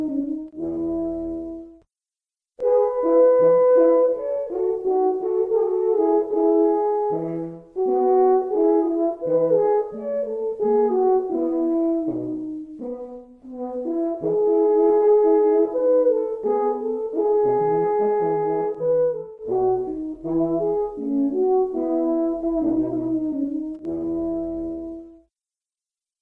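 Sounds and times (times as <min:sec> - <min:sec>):
two horns playing andante: 0:00.0 - 0:01.8, 0:02.6 - 0:25.2.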